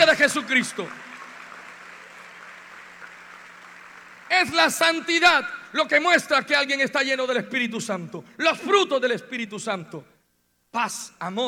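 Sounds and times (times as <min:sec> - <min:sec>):
speech: 0:00.0 - 0:01.1, 0:04.3 - 0:10.1, 0:10.7 - 0:11.4
applause: 0:00.0 - 0:05.3.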